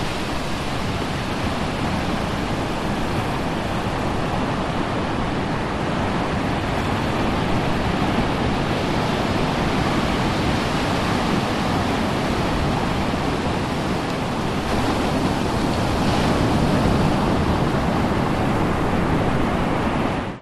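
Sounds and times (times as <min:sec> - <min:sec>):
ocean waves breaking at high tide on a sandy beach: 0:00.0 - 0:20.4.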